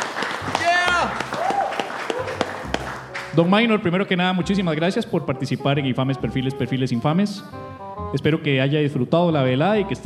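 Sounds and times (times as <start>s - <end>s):
audience applause: 0.0s - 3.4s
speech: 3.4s - 10.0s.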